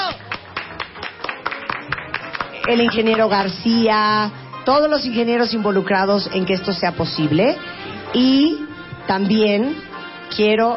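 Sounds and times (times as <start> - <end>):
small group applauding: 0.0 - 3.5
speech: 2.7 - 10.7.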